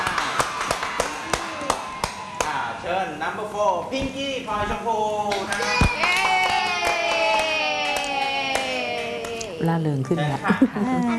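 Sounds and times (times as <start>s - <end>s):
applause: 0.0s - 2.6s, 5.3s - 9.4s
speech: 3.1s - 6.1s, 9.7s - 11.1s.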